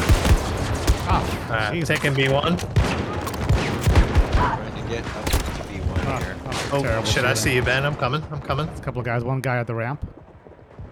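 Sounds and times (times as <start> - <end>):
rapid video game gunfire including a light machine gun: 0.0 - 7.3
speech: 1.5 - 3.2, 4.4 - 5.4, 6.1 - 10.2.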